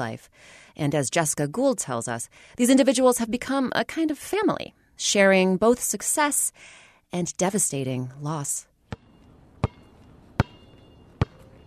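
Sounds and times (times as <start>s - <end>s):
speech: 0.0s - 8.7s
basketball bouncing: 8.9s - 11.6s.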